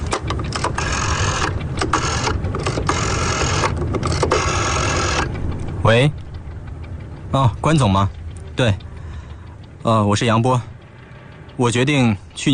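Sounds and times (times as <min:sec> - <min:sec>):
telephone being dialed: 0:00.1 - 0:05.3
speech: 0:05.9 - 0:06.2, 0:07.3 - 0:08.9, 0:09.9 - 0:10.7, 0:11.6 - 0:12.5.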